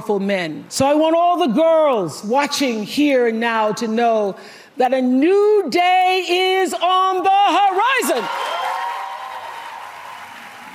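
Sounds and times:
speech: 0.0 - 8.6
audience applause after a speech: 8.3 - 10.7.

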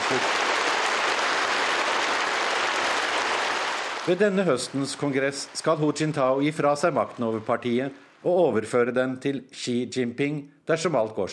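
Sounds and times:
delegates applauding after speech: 0.0 - 8.3
speech: 0.1 - 0.5, 4.0 - 11.3.

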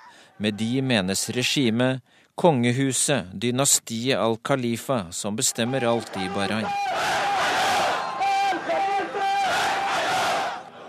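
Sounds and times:
speech: 0.4 - 7.6
angry demonstrators shouting: 5.4 - 10.8.

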